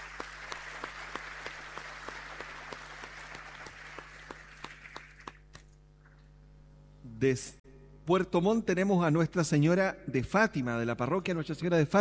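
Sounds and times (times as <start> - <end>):
audience applause of welcome: 0.0 - 5.6
speech: 7.2 - 11.9.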